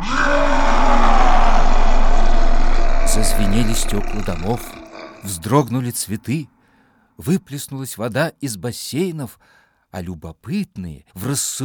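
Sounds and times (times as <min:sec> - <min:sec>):
human voice imitating a forest creature roar: 0:00.0 - 0:05.7
speech: 0:03.2 - 0:06.6, 0:07.2 - 0:11.6.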